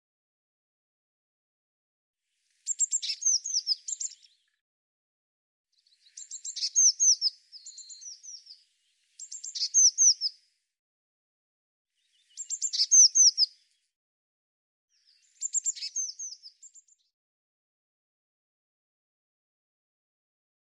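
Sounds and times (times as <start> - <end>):
bird chirping: 2.6 - 4.6, 5.8 - 10.4, 12.0 - 13.8, 14.9 - 17.1.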